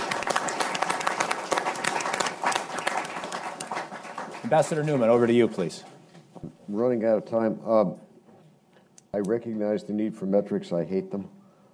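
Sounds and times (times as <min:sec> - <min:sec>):
round of applause: 0:00.0 - 0:05.4
speech: 0:04.5 - 0:06.0, 0:06.7 - 0:08.1, 0:09.2 - 0:11.4.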